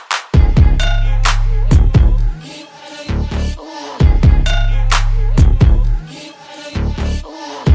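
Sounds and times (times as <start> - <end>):
clean Top 40 pop dance track: 0.2 - 7.7.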